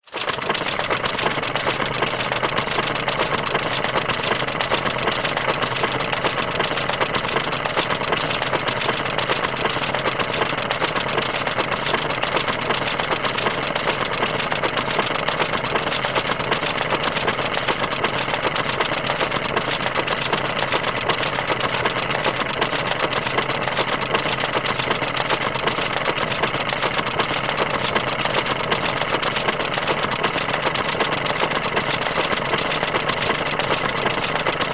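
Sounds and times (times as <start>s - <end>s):
roller coaster hill lift chain pulling: 0.1s - 34.7s.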